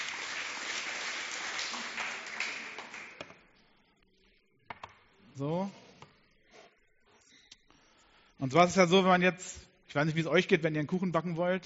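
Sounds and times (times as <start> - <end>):
audience applause: 0.0 - 3.3
speech: 5.4 - 5.8, 8.4 - 11.6.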